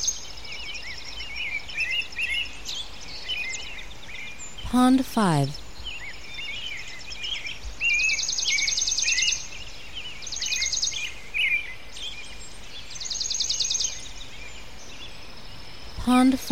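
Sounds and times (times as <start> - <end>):
small birds chirping: 0.0 - 16.5
steady background noise: 0.0 - 16.5
speech: 4.7 - 5.6, 16.1 - 16.5.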